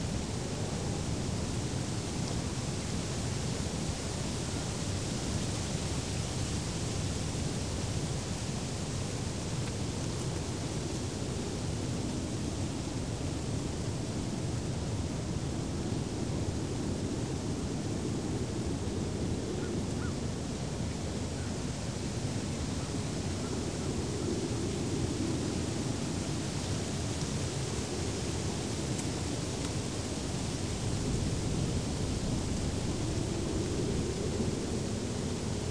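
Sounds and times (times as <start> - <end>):
wind through trees: 0.0 - 35.6.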